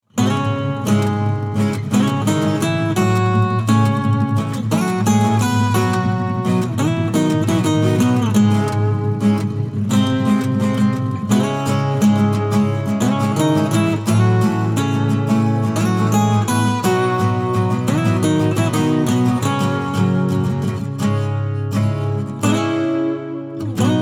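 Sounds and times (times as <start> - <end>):
acoustic music: 0.0 - 24.0.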